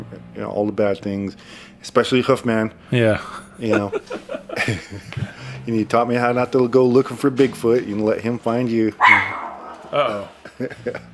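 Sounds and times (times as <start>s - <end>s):
speech: 0.4s - 9.3s, 9.9s - 11.1s
laughter: 3.1s - 5.6s, 9.9s - 11.1s
dog barking: 9.0s - 9.9s.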